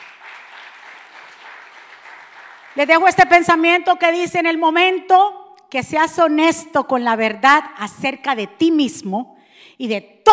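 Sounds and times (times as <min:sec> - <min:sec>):
audience applauding: 0:00.0 - 0:02.9
speech: 0:02.8 - 0:10.3.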